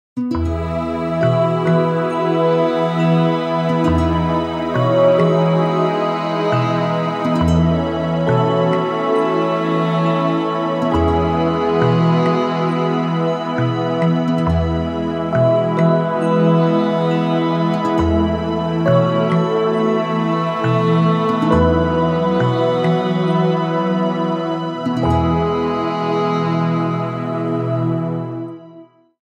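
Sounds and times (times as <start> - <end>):
smooth groove music: 0.2 - 28.9.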